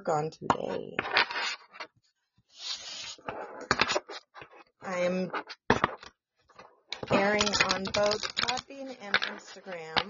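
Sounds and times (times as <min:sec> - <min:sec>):
speech: 0:00.0 - 0:01.4, 0:04.9 - 0:05.6, 0:07.2 - 0:10.0
chakra cards being shuffled: 0:01.0 - 0:01.9, 0:02.8 - 0:04.6, 0:07.0 - 0:10.0.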